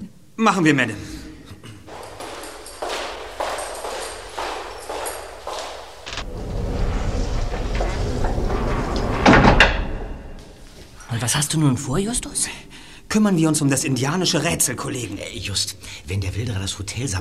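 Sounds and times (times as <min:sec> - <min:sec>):
speech: 0:00.4 - 0:01.2, 0:11.3 - 0:17.1
door being closed: 0:01.9 - 0:11.0.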